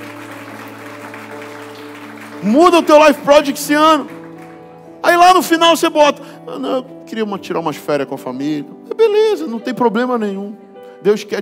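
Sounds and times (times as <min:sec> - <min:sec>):
audience applause: 0:00.0 - 0:04.8
speech: 0:02.4 - 0:04.2, 0:05.2 - 0:11.3.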